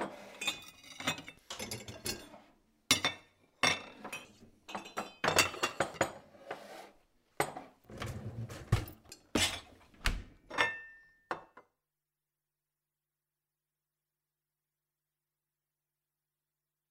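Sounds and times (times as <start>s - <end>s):
dishes clattering: 0.0s - 6.3s, 7.4s - 9.9s, 10.5s - 11.7s.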